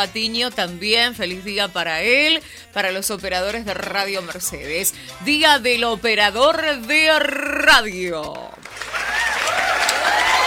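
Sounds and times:
speech: 0:00.0 - 0:09.0
applause: 0:08.5 - 0:10.4.

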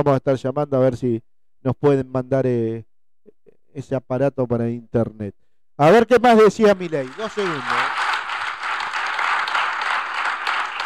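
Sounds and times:
speech: 0:00.0 - 0:07.9
audience applauding a speech: 0:06.7 - 0:10.8.

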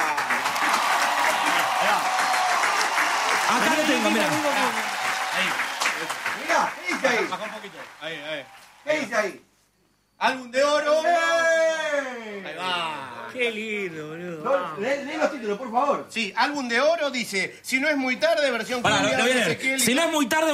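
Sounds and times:
audience applause: 0:00.0 - 0:09.1
speech: 0:03.5 - 0:09.5, 0:10.2 - 0:20.5.

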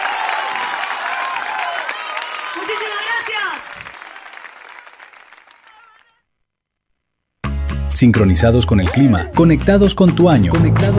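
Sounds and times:
applause: 0:00.0 - 0:06.2
speech: 0:02.6 - 0:03.9, 0:08.0 - 0:10.9.

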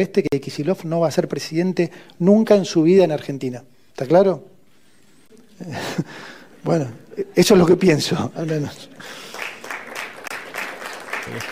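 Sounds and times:
speech: 0:00.0 - 0:04.5, 0:05.6 - 0:09.2, 0:11.3 - 0:11.5
audience applause: 0:08.4 - 0:11.5.

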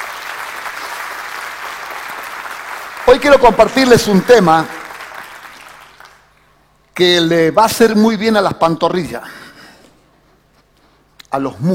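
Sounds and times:
church congregation clapping: 0:00.0 - 0:06.4
speech: 0:03.1 - 0:04.8, 0:07.0 - 0:09.4, 0:11.3 - 0:11.7.

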